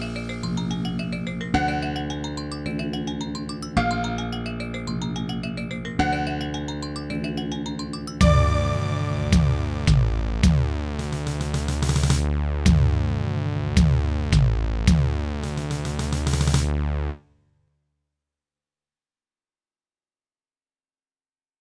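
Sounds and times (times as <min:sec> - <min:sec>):
ambient music: 0:00.0 - 0:16.8.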